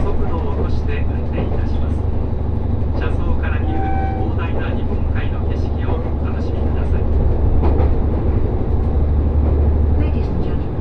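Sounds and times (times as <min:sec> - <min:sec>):
people talking: 0:00.0 - 0:02.0, 0:03.0 - 0:07.2, 0:09.9 - 0:10.7
Resort Shirakami No. 4 train carriage rumble and rattle on the Gonō Line: 0:00.0 - 0:10.7
brief high tone: 0:03.6 - 0:04.3.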